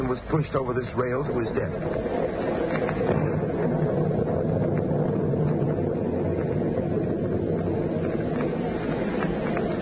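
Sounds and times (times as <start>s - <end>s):
churning sea waves: 0.0s - 9.8s
storm wind at sea: 0.0s - 9.8s
speech: 0.1s - 3.2s.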